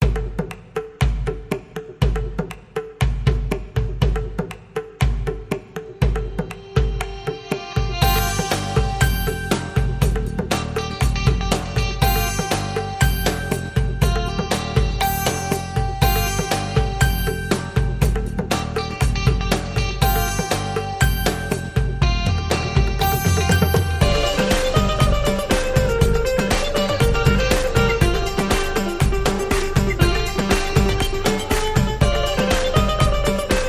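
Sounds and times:
Bhangra music: 0.0 - 33.6.

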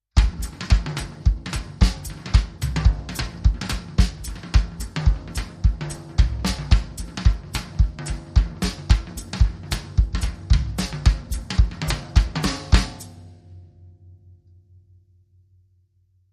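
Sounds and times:
bass music: 0.1 - 13.2.

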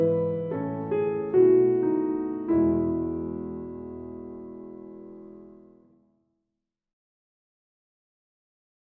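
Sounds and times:
solo piano: 0.0 - 6.1.

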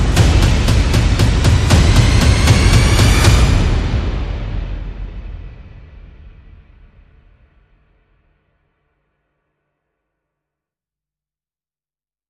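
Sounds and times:
percussion and effects: 0.0 - 7.8.

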